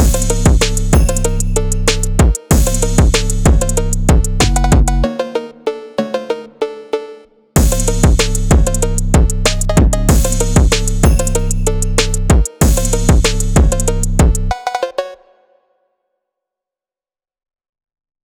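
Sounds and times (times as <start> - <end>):
phonk beat at 190 BPM: 0.0 - 6.6, 7.6 - 14.9.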